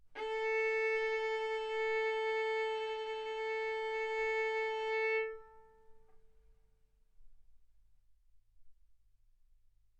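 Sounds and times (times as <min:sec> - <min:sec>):
violin bowed mezzo-forte on the A string, A4 and B4: 0:00.1 - 0:06.2.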